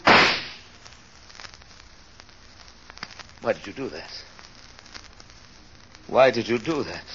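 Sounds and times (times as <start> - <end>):
gunshot fired into the air: 0.0 - 0.7
speech: 3.4 - 4.3, 6.1 - 7.1.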